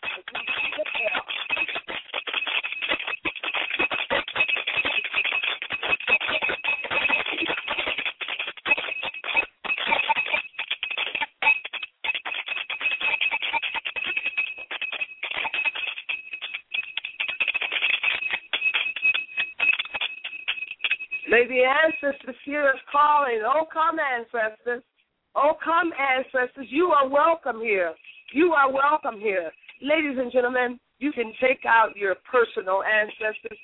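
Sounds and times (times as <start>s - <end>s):
ritual bell ringing: 0.0s - 23.2s
speech: 21.4s - 33.6s.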